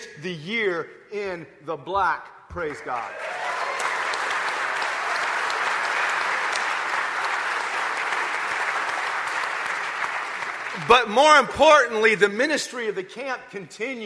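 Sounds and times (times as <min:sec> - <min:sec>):
speech: 0:00.1 - 0:03.4, 0:10.8 - 0:14.0
audience applause: 0:02.8 - 0:11.1.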